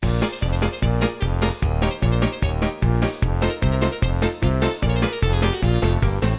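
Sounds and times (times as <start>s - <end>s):
game music: 0.0s - 6.3s.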